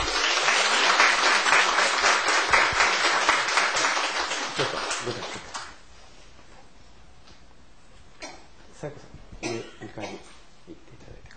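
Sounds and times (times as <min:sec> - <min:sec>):
church congregation applause welcoming a pastor and his wife: 0:00.0 - 0:05.8.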